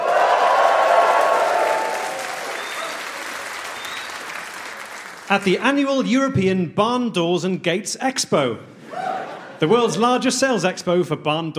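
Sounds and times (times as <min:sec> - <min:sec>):
live audience applauding: 0:00.0 - 0:05.6
speech: 0:05.3 - 0:08.8, 0:09.6 - 0:11.5
laughter: 0:08.8 - 0:10.2.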